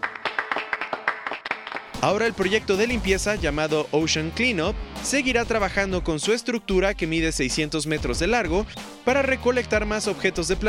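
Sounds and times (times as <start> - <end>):
applause: 0.0 - 2.2
speech: 2.0 - 10.6.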